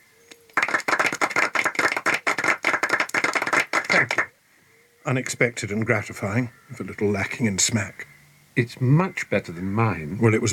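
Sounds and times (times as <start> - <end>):
audience clapping: 0.5 - 4.3
speech: 5.0 - 10.5.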